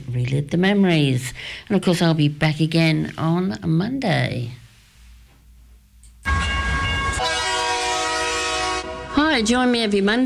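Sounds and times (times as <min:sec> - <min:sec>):
speech: 0:00.2 - 0:04.6, 0:09.2 - 0:10.2
train horn blast: 0:06.2 - 0:09.7.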